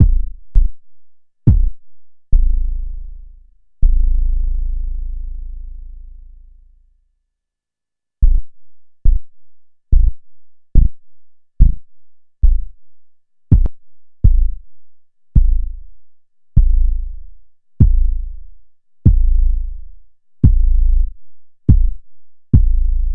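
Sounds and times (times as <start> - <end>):
kick drum: 0.0 - 0.8, 1.5 - 2.7, 3.8 - 4.0, 8.2 - 11.0, 11.6 - 12.8, 13.5 - 14.6, 15.4 - 15.8, 16.6 - 17.2, 17.8 - 18.4, 19.0 - 19.8, 20.4 - 23.0.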